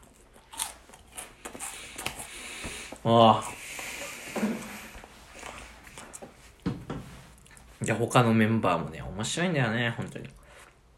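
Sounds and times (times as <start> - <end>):
person eating snacks: 0.0 - 2.5
speech: 3.0 - 3.6, 7.9 - 10.4.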